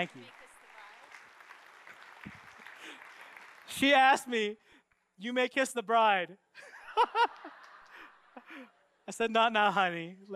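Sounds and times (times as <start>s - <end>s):
speech: 0.0s - 0.4s, 3.7s - 4.6s, 5.2s - 7.6s, 8.6s - 10.3s
audience applause: 0.0s - 4.5s, 7.1s - 8.6s
laughter: 6.6s - 8.8s.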